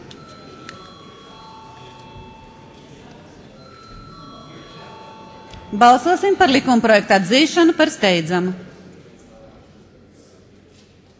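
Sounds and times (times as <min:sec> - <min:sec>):
parliament voting bell ringing: 0:00.0 - 0:08.7
speech: 0:05.7 - 0:08.7.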